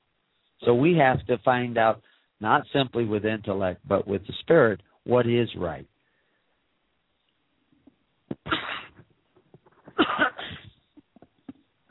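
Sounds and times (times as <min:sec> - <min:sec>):
speech: 0:00.6 - 0:05.9
person coughing: 0:08.4 - 0:09.0, 0:09.9 - 0:10.7.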